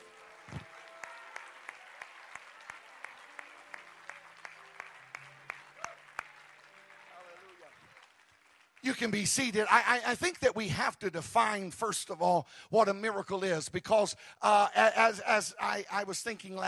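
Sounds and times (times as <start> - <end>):
audience clapping hands: 0.0 - 10.1
speech: 8.9 - 16.6.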